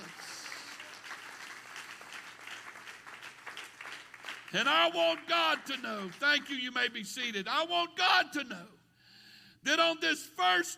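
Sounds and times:
audience clapping hands: 0.0s - 6.7s
speech: 4.5s - 8.8s, 9.6s - 10.7s.

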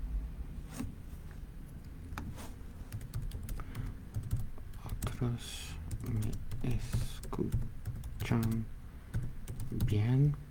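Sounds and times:
typing a message on a computer keyboard: 2.9s - 5.2s, 5.9s - 10.0s
speech: 5.2s - 8.7s, 9.7s - 10.4s.

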